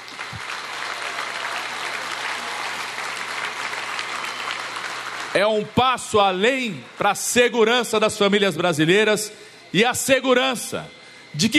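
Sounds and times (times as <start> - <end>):
crowd applause: 0.0 - 7.6
speech: 5.4 - 11.5.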